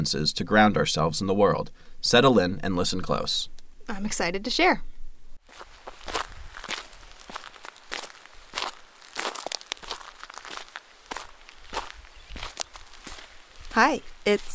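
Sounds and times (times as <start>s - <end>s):
speech: 0.0s - 4.9s, 13.8s - 14.5s
footsteps hiking on a forest trail: 5.4s - 14.5s.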